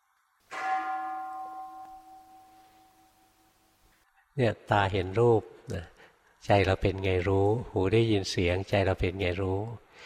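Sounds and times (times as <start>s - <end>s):
meditation bell ringing during mindfulness-of-breathing meditation: 0.5s - 3.6s
speech: 4.4s - 10.0s.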